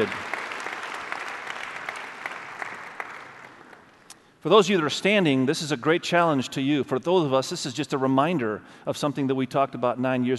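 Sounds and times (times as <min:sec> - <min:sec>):
speech: 0:00.0 - 0:00.3, 0:04.4 - 0:10.3
audience applause: 0:00.0 - 0:04.0.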